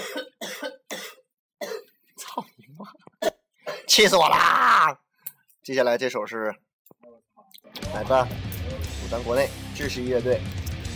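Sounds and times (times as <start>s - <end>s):
person coughing: 0.0s - 3.9s
speech: 3.9s - 5.0s, 5.6s - 6.7s, 7.9s - 8.5s, 9.1s - 10.6s.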